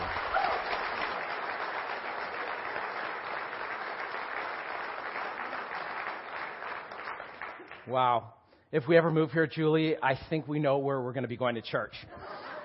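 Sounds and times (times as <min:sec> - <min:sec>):
crowd audience clapping: 0:00.0 - 0:08.2
speech: 0:07.9 - 0:12.3
laughter: 0:12.1 - 0:12.6.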